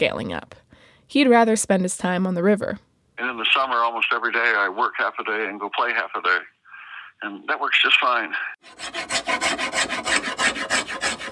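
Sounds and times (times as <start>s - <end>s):
speech: 0.0s - 6.5s, 7.2s - 9.6s
hand tools carving a paddle: 8.6s - 11.3s.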